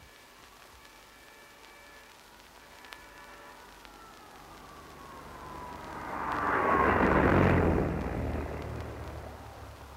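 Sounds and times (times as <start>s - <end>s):
propeller-driven rail car Schienenzeppelin passing at speed: 4.2s - 9.9s.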